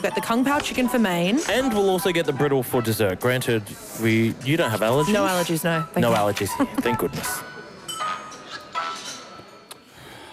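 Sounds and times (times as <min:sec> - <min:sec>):
speech: 0:00.0 - 0:07.5
restaurant chatter: 0:00.0 - 0:10.3
cutlery and glassware clinking: 0:05.2 - 0:09.7.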